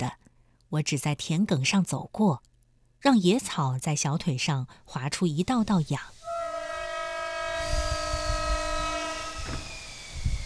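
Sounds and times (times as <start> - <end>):
speech: 0.0 - 6.2
long steady horn-like tone of train arriving: 6.2 - 9.6.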